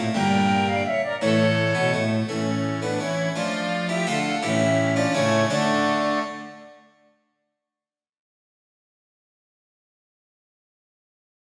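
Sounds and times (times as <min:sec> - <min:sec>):
cello playing a gigue: 0:00.0 - 0:06.8
harpsichord playing a gigue: 0:00.0 - 0:06.9
flute playing a gigue: 0:00.0 - 0:07.0
violin playing a gigue: 0:00.0 - 0:07.0.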